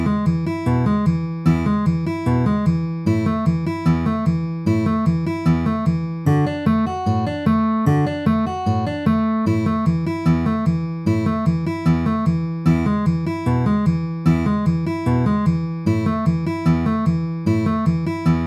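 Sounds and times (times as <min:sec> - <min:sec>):
D A E A downward arpeggio with alternating bass: 0:00.0 - 0:18.4.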